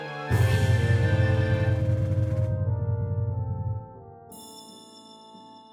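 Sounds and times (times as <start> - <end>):
MIDI realization music: 0.3 - 4.3.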